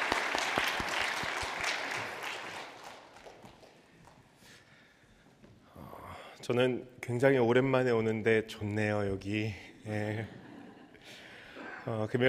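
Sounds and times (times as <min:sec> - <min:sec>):
audience applause: 0:00.0 - 0:03.9
speech: 0:06.5 - 0:10.4, 0:11.9 - 0:12.2.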